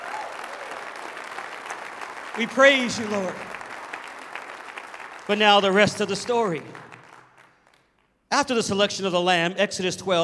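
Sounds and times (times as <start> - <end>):
audience clapping hands in praise: 0.0 - 8.2
speech: 2.4 - 3.5, 5.3 - 6.8, 8.3 - 10.2.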